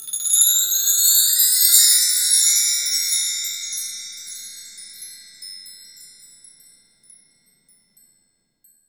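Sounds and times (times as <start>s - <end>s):
mark tree wind chime: 0.0s - 8.8s.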